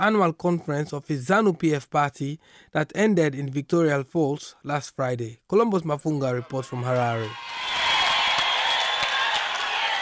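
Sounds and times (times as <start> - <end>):
speech: 0.0 - 7.6
ZANU-PF delegates cheering President Robert Mugabe: 6.4 - 9.9
clapping: 7.2 - 9.9.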